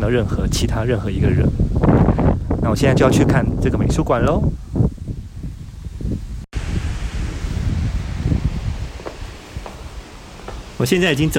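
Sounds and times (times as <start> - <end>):
speech: 0.0 - 2.0, 2.6 - 4.9, 10.8 - 11.3
wind in a quiet forest: 0.0 - 11.3
leafy rustles: 6.6 - 11.3.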